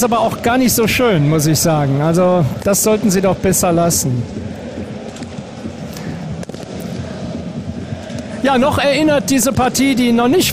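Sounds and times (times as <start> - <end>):
speech: 0.0 - 4.6, 8.4 - 10.5
fireworks set off in football stadium: 0.0 - 10.5.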